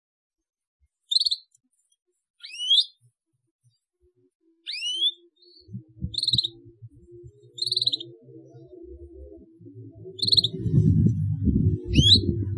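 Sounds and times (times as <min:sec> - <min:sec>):
Atlantic canary song: 0:01.0 - 0:01.6, 0:02.4 - 0:03.8, 0:04.5 - 0:12.5.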